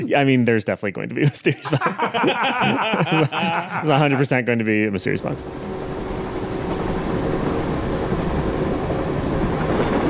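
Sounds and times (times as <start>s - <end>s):
speech: 0.1s - 5.8s
laughter: 1.2s - 4.4s
train rolling along rails: 5.4s - 10.0s.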